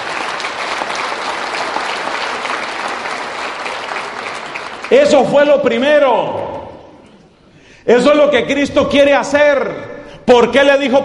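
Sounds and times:
audience applause: 0:00.0 - 0:05.4
speech: 0:04.9 - 0:06.4, 0:07.9 - 0:11.0.

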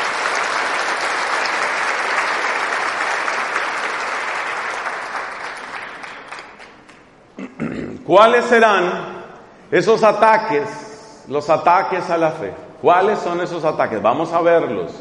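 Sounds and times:
crowd applause: 0:00.0 - 0:07.1
speech: 0:08.1 - 0:09.1, 0:09.7 - 0:14.9.

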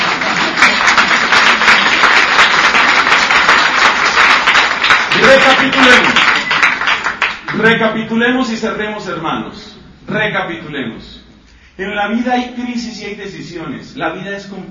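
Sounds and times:
audience applause: 0:00.0 - 0:07.6
speech: 0:05.3 - 0:06.2, 0:07.5 - 0:11.2, 0:11.8 - 0:14.6.

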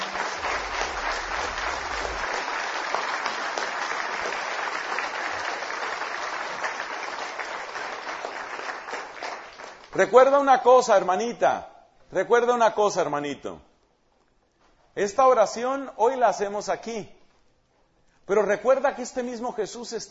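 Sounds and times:
applause: 0:00.0 - 0:10.3
speech: 0:10.0 - 0:13.7, 0:15.0 - 0:17.2, 0:18.3 - 0:20.0.

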